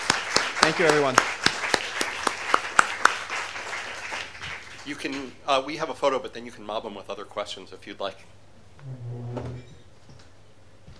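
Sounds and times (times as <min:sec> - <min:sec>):
audience applause: 0:00.0 - 0:05.4
speech: 0:00.7 - 0:01.4, 0:04.8 - 0:09.5.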